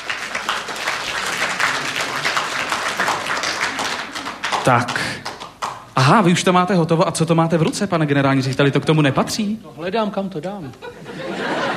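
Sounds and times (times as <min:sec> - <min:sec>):
audience applause: 0:00.0 - 0:05.9
speech: 0:04.7 - 0:05.2, 0:06.0 - 0:11.0
laughter: 0:10.8 - 0:11.7.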